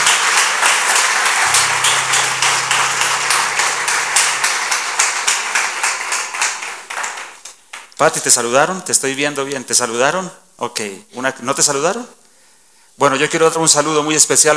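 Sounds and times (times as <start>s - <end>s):
audience applauding: 0.0s - 8.4s
low sustained hum: 1.4s - 6.8s
speech: 8.0s - 12.2s, 13.0s - 14.5s.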